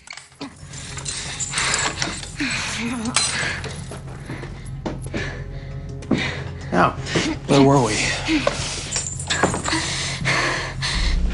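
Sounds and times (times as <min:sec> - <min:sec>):
metal manacles clinking as fastened: 0:00.0 - 0:05.2, 0:08.2 - 0:10.3
speech: 0:02.4 - 0:04.0, 0:06.8 - 0:08.6
low steady hum: 0:11.0 - 0:11.3.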